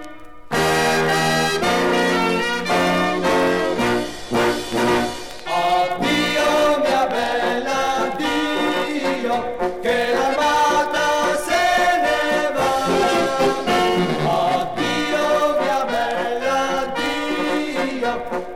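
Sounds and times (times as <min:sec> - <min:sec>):
choir singing: 0:00.5 - 0:18.5.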